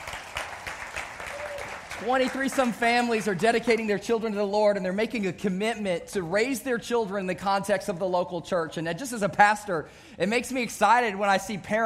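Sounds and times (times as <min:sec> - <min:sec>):
audience applauding: 0:00.0 - 0:04.0
speech: 0:02.0 - 0:11.8.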